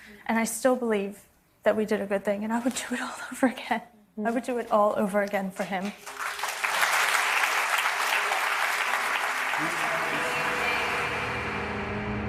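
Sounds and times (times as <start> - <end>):
speech: 0.2 - 6.2
audience applause: 5.8 - 12.0.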